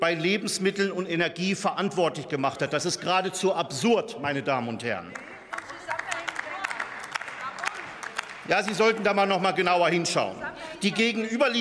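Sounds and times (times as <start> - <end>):
speech: 0.0 - 5.3, 8.5 - 11.5
parliament members clapping: 5.1 - 10.2.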